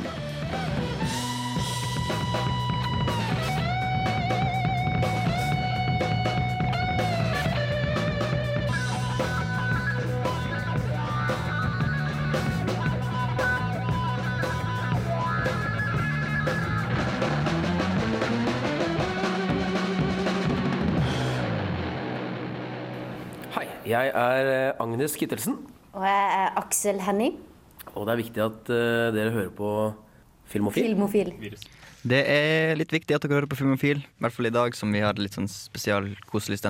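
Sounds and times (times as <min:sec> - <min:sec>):
music track: 0:00.0 - 0:23.8
speech: 0:23.9 - 0:27.4, 0:28.0 - 0:36.6.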